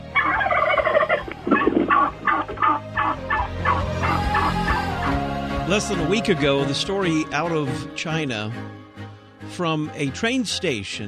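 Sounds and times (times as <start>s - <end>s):
turkey gobbling: 0.0s - 5.2s
speech: 5.7s - 8.8s, 9.5s - 11.0s.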